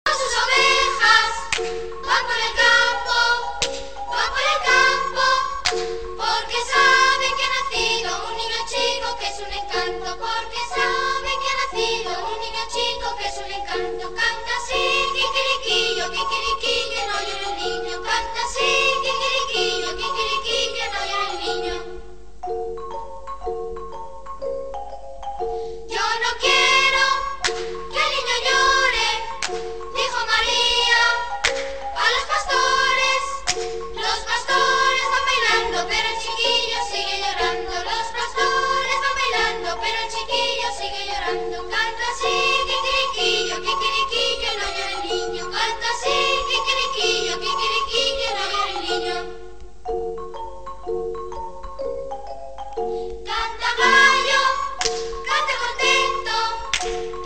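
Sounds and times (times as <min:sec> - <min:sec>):
Christmas carol: 0:00.0 - 0:57.2.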